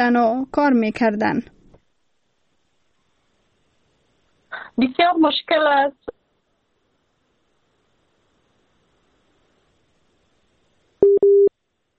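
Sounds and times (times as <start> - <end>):
speech: 0.0 - 1.6, 4.8 - 6.2
telephone busy tone after a dropped call: 11.0 - 11.5.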